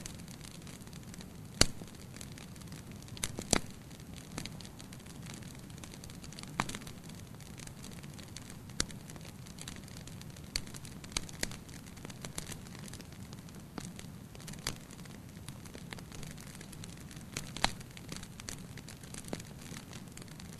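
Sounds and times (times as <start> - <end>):
campfire crackling: 0.0 - 20.5.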